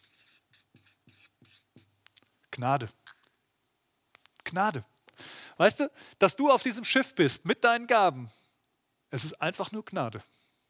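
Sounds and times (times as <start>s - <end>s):
pen writing by hand on paper: 0.0s - 1.9s
speech: 2.6s - 3.0s, 4.5s - 4.9s, 5.6s - 8.4s, 9.1s - 10.3s.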